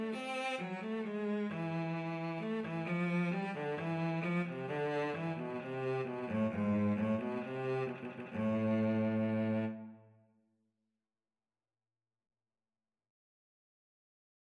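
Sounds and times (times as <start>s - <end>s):
cello duet: 0.0s - 10.1s.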